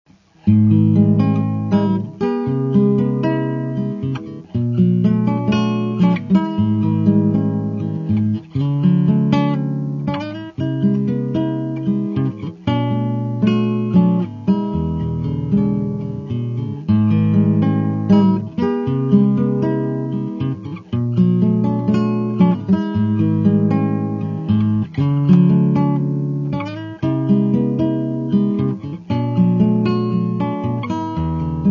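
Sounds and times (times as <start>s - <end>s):
guitar: 0.0s - 31.7s.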